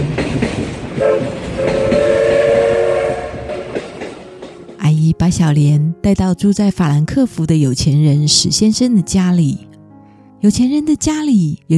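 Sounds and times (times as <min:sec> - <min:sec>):
train running: 0:00.0 - 0:05.8
train horn: 0:01.0 - 0:04.0
speech: 0:05.3 - 0:09.7, 0:10.4 - 0:11.7.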